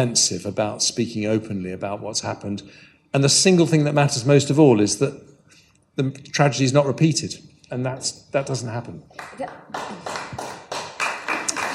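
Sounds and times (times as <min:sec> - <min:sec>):
speech: 0:00.0 - 0:05.3, 0:06.0 - 0:10.4
audience applause: 0:09.2 - 0:11.7.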